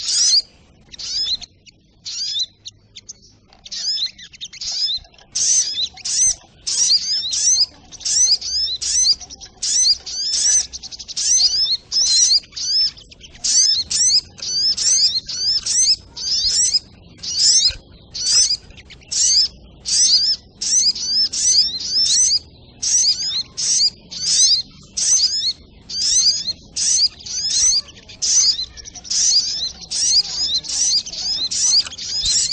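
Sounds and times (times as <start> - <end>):
little spiderhunter high twittering bursts: 0.0 - 32.5.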